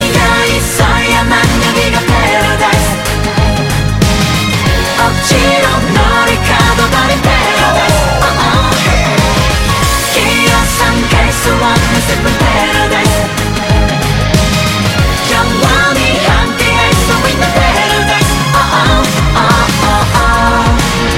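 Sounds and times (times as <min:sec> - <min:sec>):
chorus singing: 0:00.0 - 0:21.1.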